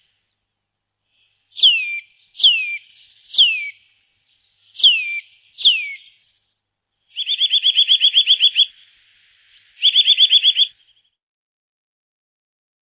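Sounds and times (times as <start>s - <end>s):
Eurasian nuthatch giving rapid repeated sharp calls: 1.2s - 6.5s, 7.1s - 11.1s.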